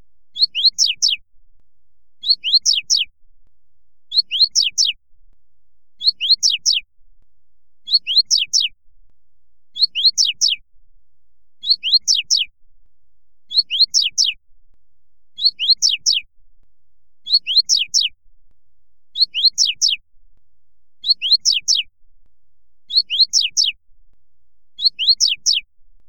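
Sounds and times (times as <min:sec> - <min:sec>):
Coleiro Tui Tui Fibra singing: 0:00.3 - 0:01.2, 0:02.2 - 0:03.1, 0:04.1 - 0:05.0, 0:06.0 - 0:06.9, 0:07.8 - 0:08.8, 0:09.7 - 0:10.6, 0:11.6 - 0:12.5, 0:13.5 - 0:14.4, 0:15.4 - 0:16.3, 0:17.2 - 0:18.2, 0:19.1 - 0:20.0, 0:21.0 - 0:21.9, 0:22.9 - 0:23.8, 0:24.8 - 0:25.7.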